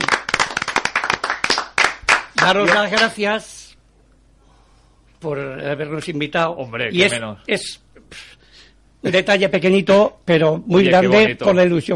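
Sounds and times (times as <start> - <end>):
applause: 0.0 - 3.2
speech: 2.4 - 3.6, 5.2 - 8.4, 9.0 - 11.9.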